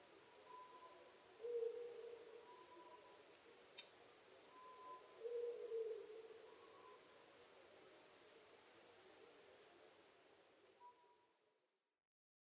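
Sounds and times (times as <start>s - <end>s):
Ural owl calling: 0.5s - 3.2s, 4.7s - 7.0s.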